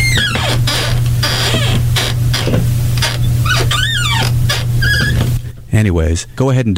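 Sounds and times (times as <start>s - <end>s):
squeaky chair making droid-like beeps: 0.0s - 5.4s
speech: 5.8s - 6.7s.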